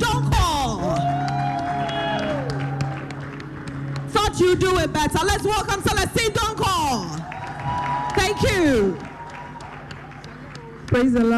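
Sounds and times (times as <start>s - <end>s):
round of applause: 0.7s - 4.3s, 6.8s - 11.3s
speech: 4.4s - 7.3s, 11.0s - 11.3s.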